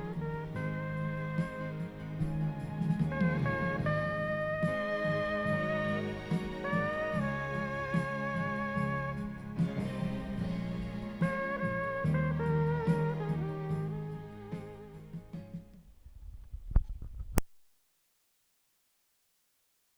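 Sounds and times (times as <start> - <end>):
person imitating a trumpet: 0.0 - 10.6, 11.2 - 15.0.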